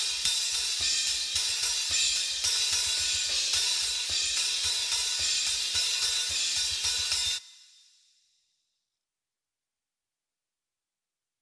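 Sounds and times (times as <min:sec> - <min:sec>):
drums: 0:00.0 - 0:07.9.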